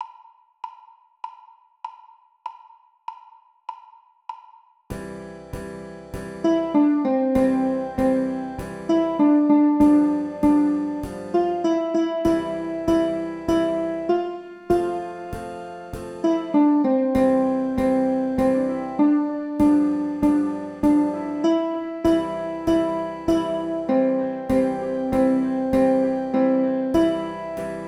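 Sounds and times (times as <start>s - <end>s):
song: 6.2s - 27.8s.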